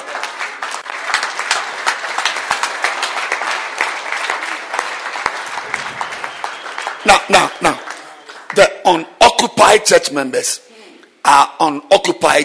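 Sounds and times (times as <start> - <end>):
audience clapping hands: 0.0 - 9.0
speech: 7.3 - 7.8, 8.6 - 10.6, 11.3 - 12.4.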